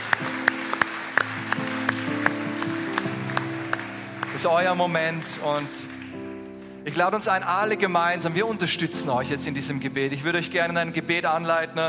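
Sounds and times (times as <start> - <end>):
audience applause: 0.0 - 6.6
speech: 4.4 - 5.9, 6.8 - 11.8.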